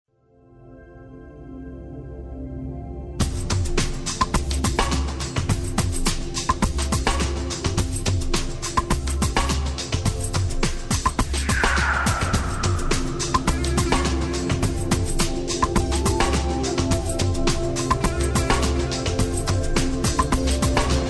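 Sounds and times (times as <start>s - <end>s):
new age music: 0.1s - 21.0s.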